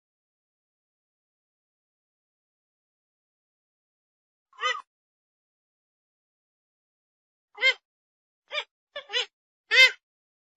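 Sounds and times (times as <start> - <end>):
grey-headed swamphen calls: 4.6 - 4.8, 8.5 - 10.0.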